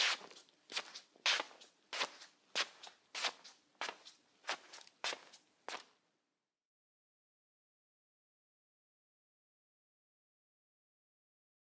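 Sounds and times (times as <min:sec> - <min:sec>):
slippers: 0:00.0 - 0:06.0.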